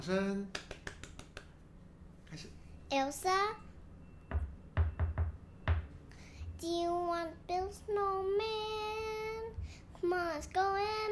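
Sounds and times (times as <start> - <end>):
speech: 0.0 - 0.7, 2.3 - 3.7, 6.6 - 9.2, 10.0 - 11.1
knocking on a door: 4.3 - 5.9.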